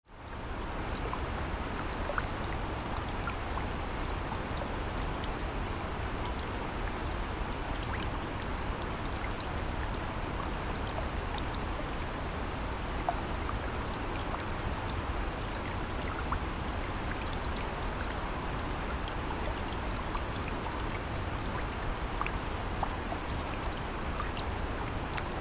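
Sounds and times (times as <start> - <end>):
gentle rain on water: 0.0 - 25.4.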